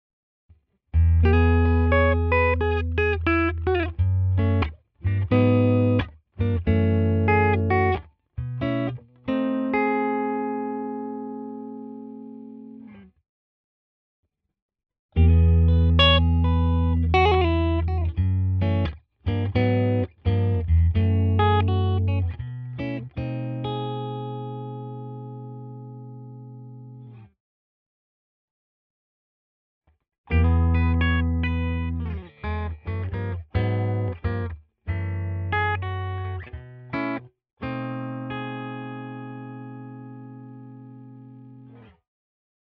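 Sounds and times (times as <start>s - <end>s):
clean fingerstyle jazz guitar: 1.0s - 13.1s, 15.2s - 27.3s, 30.3s - 42.0s.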